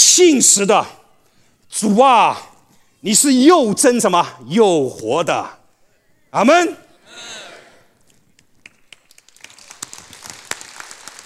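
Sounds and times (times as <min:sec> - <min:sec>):
speech: 0:00.2 - 0:01.0, 0:01.7 - 0:05.6, 0:06.3 - 0:07.4
audience applause: 0:08.9 - 0:11.2.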